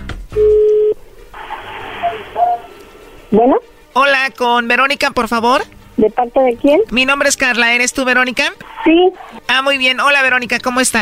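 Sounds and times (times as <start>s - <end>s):
steady mid-pitched telephone tone: 0.4s - 2.8s
soft hiss of an open phone line: 1.3s - 3.3s
speech: 3.3s - 11.0s.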